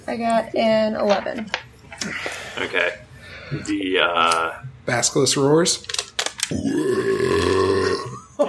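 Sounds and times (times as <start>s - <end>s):
speech: 0.1s - 7.6s
long loud deep burp: 6.5s - 8.3s.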